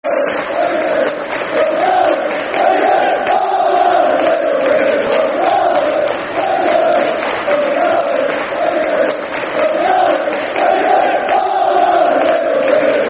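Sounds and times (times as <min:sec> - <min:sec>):
football crowd chanting: 0:00.0 - 0:13.0.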